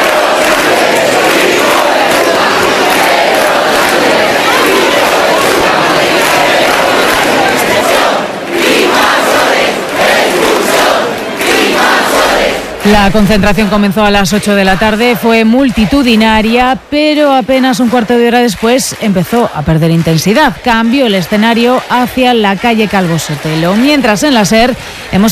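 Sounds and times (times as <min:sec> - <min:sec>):
crowd shouting insults at a rally: 0:00.0 - 0:12.8
crowd chanting for a minister's resignation: 0:00.0 - 0:16.9, 0:17.7 - 0:25.3
speech: 0:13.0 - 0:25.3.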